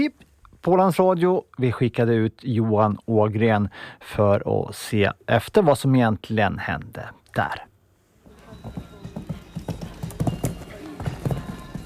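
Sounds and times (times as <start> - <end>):
speech: 0.0 - 7.7, 8.6 - 8.9
outdoor noise: 0.0 - 11.8
voices: 8.2 - 11.8
horse hooves clip-clopping at show jumping: 8.3 - 11.8.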